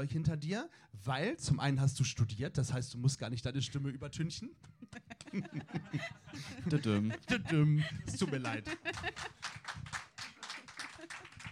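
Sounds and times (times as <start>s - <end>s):
speech: 0.0s - 9.4s
laughter: 4.8s - 9.6s, 10.6s - 11.5s
applause: 8.2s - 11.5s.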